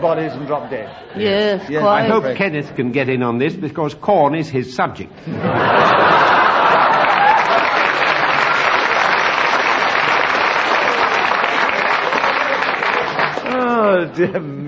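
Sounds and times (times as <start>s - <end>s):
laughter: 0.0s - 2.2s, 5.2s - 9.3s
speech: 0.0s - 6.2s, 14.2s - 14.6s
studio audience applause: 5.7s - 13.9s.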